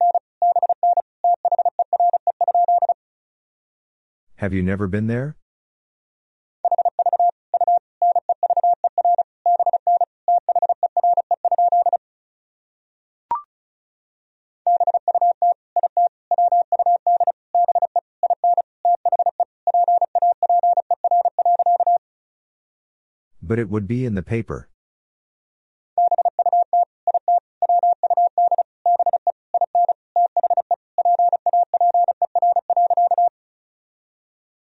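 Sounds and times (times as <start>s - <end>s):
Morse code tone at 35 words per minute: 0.0s - 3.0s, 6.7s - 12.0s, 14.7s - 22.0s, 26.0s - 33.3s
speech: 4.4s - 5.4s, 23.5s - 24.7s.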